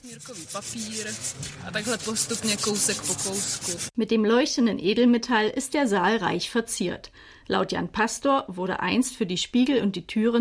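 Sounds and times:
sandpaper sanding a gilded surface: 0.0s - 4.0s
speech: 0.0s - 10.3s.

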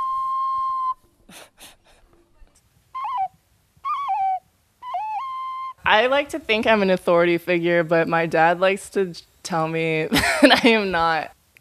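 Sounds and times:
ocarina necklace played, sounding like a flute: 0.0s - 1.2s, 2.3s - 6.3s
speech: 5.8s - 11.5s.

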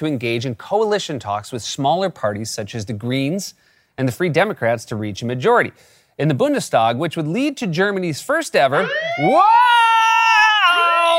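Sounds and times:
speech: 0.0s - 9.9s
news alert siren installed in the studio: 8.7s - 11.1s.

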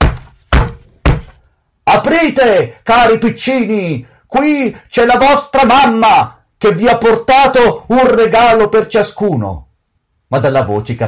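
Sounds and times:
knocking on a door: 0.0s - 1.4s
speech: 2.0s - 9.7s, 10.3s - 11.0s.

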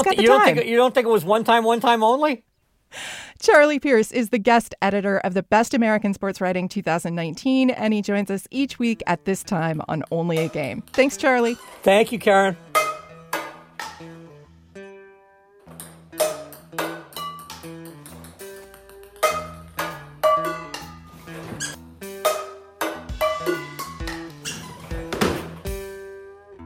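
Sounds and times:
speech: 0.0s - 12.7s
ping pong balls bouncing off pots and pans: 10.0s - 11.8s, 12.7s - 14.2s, 15.6s - 25.9s.

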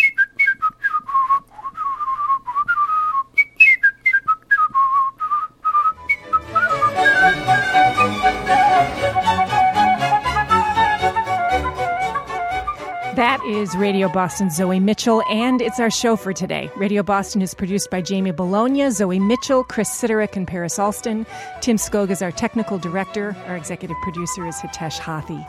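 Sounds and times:
solo whistler whistling a lively baroque melody: 0.0s - 15.9s, 23.9s - 25.4s
full instrumental ensemble playing: 6.0s - 14.7s
speech: 13.6s - 25.4s.

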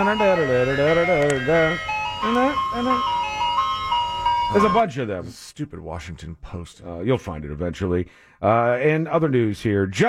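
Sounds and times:
speech: 0.0s - 3.2s, 4.5s - 10.0s
ice cream truck song: 0.0s - 5.0s.

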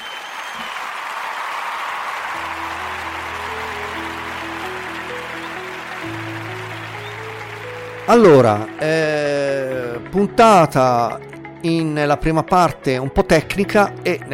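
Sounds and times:
applause sound effect: 0.0s - 9.8s
speech: 8.1s - 9.1s, 10.0s - 14.3s.

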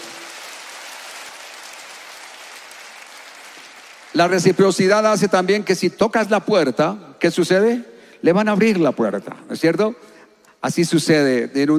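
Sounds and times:
crowd clapping: 0.0s - 5.8s
speech: 4.1s - 11.7s.

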